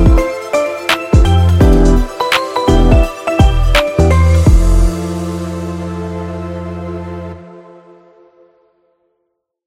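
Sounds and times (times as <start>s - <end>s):
upbeat lo-fi music: 0.0s - 7.4s.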